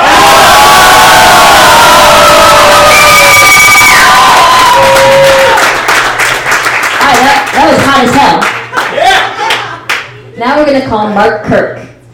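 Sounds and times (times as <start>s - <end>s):
whoops and sharp yells: 0.0s - 5.6s
crowd of about fifty people cheering in agreement: 0.0s - 7.6s, 8.6s - 9.9s
speech: 10.9s - 11.8s.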